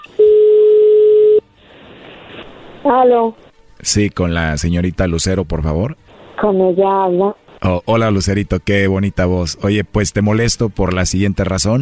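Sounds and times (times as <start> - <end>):
telephone ringback tone: 0.0 - 1.4
faint hiss on the phone line: 1.5 - 4.3, 5.7 - 6.6
speech: 2.8 - 11.8.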